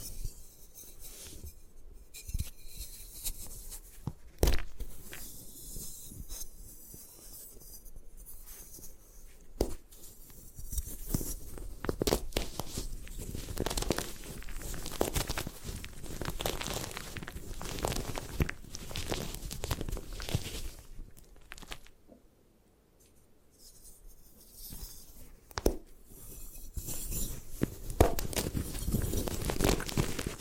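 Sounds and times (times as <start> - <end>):
gym chalk crushed and crumbled: 2.2 - 21.9, 24.5 - 30.3.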